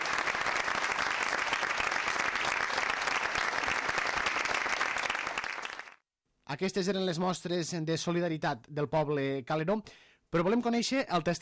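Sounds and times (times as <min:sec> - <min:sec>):
strong applause from all attendees: 0:00.0 - 0:06.0
speech: 0:06.5 - 0:11.3.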